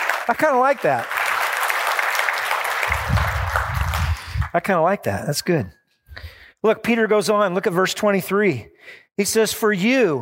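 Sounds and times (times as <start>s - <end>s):
audience applause: 0.0s - 4.5s
speech: 0.3s - 1.1s, 4.5s - 5.8s, 6.6s - 10.1s.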